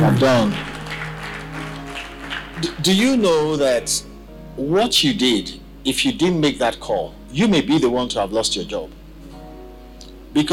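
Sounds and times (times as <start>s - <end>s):
audience applause: 0.0s - 3.2s
speech: 0.1s - 0.7s, 2.6s - 9.0s, 10.3s - 10.5s.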